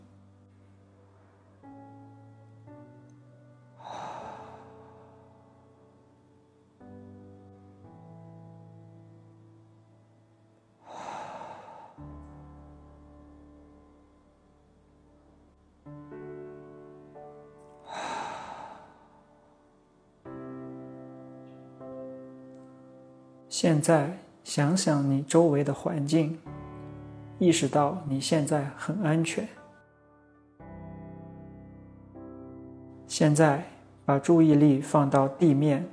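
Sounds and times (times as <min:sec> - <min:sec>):
calm sustained music: 0:00.0 - 0:35.9
deep breathing in through the nose and out through the mouth during a guided meditation: 0:03.8 - 0:05.6, 0:10.8 - 0:12.4, 0:17.8 - 0:19.6
speech: 0:23.6 - 0:26.5, 0:27.4 - 0:29.6, 0:33.2 - 0:35.9.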